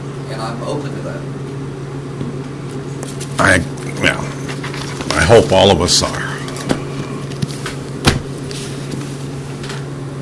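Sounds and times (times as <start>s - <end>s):
speech: 0.3s - 1.4s, 3.1s - 4.3s, 5.3s - 6.8s
ice machine humming: 3.3s - 10.0s.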